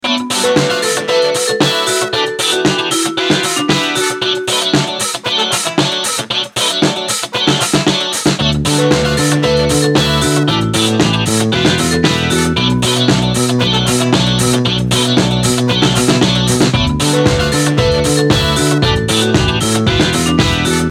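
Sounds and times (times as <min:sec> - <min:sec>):
disco music: 0:00.0 - 0:20.9.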